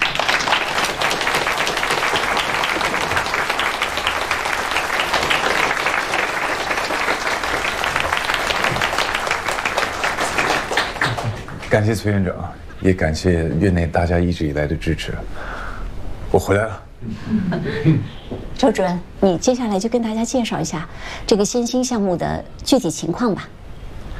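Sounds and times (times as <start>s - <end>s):
room full of people clapping: 0.0s - 12.0s
speech: 11.8s - 15.5s, 16.4s - 23.6s.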